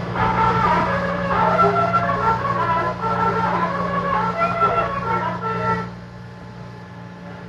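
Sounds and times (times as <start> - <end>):
bugle calls: 0.1 - 5.9.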